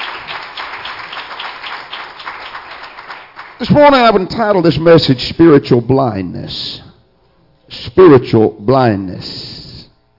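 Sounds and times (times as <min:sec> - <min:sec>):
audience clapping hands in praise: 0:00.0 - 0:04.2
speech: 0:03.6 - 0:06.8, 0:07.7 - 0:09.5.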